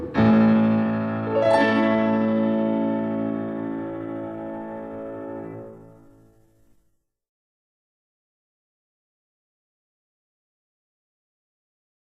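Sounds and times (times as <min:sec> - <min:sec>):
violin playing: 0:00.2 - 0:06.1.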